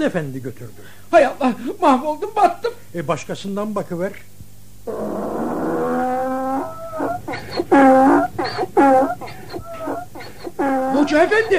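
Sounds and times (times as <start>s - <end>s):
speech: 0.0s - 5.3s, 10.6s - 11.5s
donkey braying: 4.9s - 11.5s.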